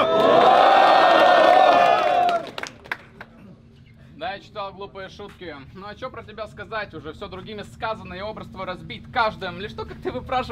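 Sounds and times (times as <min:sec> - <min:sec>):
crowd cheering and shouting: 0:00.0 - 0:02.5
scattered claps: 0:01.7 - 0:03.4
speech: 0:04.7 - 0:10.4.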